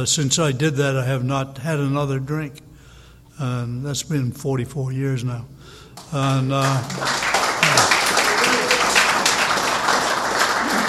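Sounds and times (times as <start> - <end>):
speech: 0.0 - 2.7, 3.4 - 7.2
audience clapping at an AA meeting: 6.0 - 10.8.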